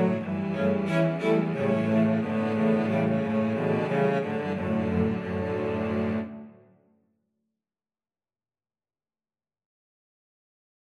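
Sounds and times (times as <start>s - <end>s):
cello ensemble: 0.0s - 6.7s.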